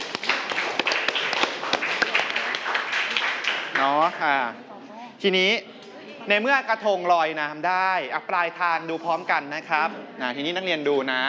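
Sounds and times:
group of children clapping: 0.0s - 4.3s
speech: 4.0s - 5.7s, 6.3s - 11.2s.

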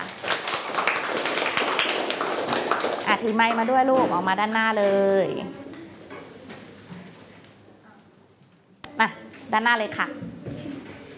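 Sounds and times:
group of students clapping: 0.0s - 3.8s
speech: 3.1s - 5.6s, 9.0s - 10.2s.

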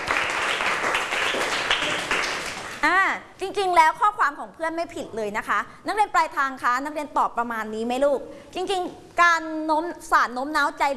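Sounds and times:
classroom applause for two students: 0.0s - 2.8s
speech: 3.8s - 10.9s.

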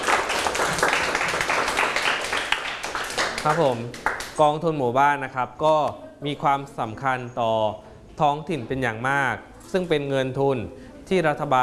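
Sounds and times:
group clapping for a classmate: 0.0s - 4.4s
speech: 3.4s - 11.6s.

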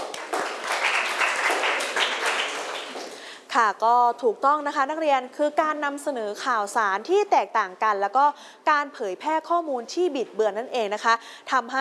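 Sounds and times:
students clapping: 0.0s - 3.3s
speech: 3.6s - 11.8s.

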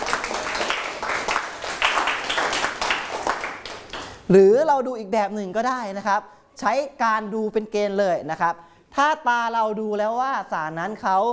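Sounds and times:
classmates clapping: 0.0s - 4.3s
speech: 4.3s - 11.3s.

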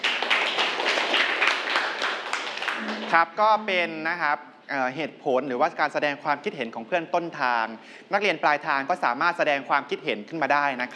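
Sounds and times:
group of students clapping for a classmate: 0.0s - 3.2s
speech: 3.1s - 10.9s.

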